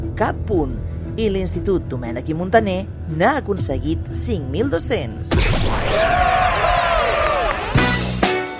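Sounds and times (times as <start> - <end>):
speech: 0.2 - 6.7
punchy musical hits: 5.3 - 8.5
students cheering and shouting: 5.8 - 7.8.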